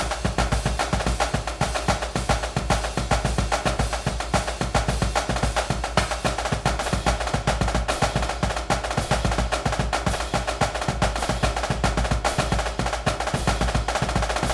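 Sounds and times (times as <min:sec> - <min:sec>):
drumline drumming: 0:00.0 - 0:14.5.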